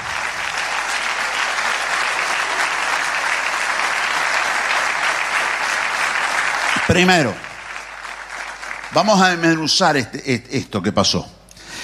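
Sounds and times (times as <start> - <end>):
audience applause: 0.0 - 10.2
speech: 6.9 - 7.4, 8.9 - 11.4.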